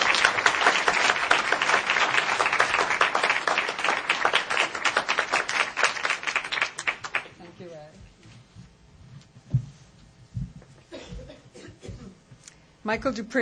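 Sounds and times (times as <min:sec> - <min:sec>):
audience applause: 0:00.0 - 0:07.4
speech: 0:12.9 - 0:13.4.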